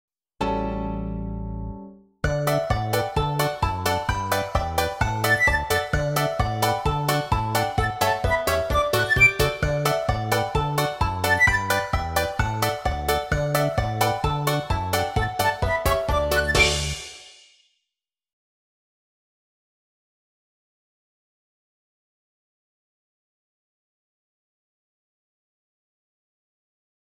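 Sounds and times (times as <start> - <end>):
music: 0.4 - 17.8.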